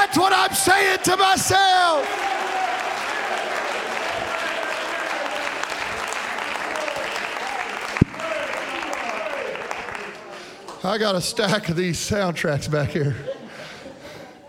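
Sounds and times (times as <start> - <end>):
audience clapping hands: 0.0 - 11.0
speech: 0.1 - 2.8, 10.8 - 13.4
laughter: 11.3 - 14.4.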